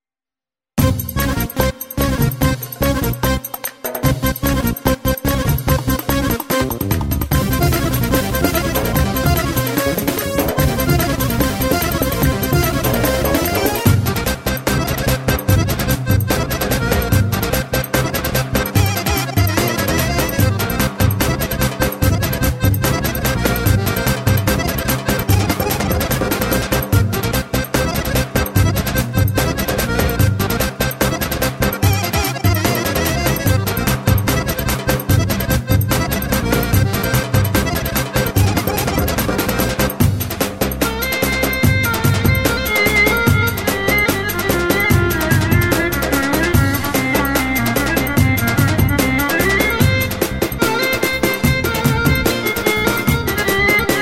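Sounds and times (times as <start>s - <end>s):
Roman ciftetelli dance music: 0.8s - 54.0s.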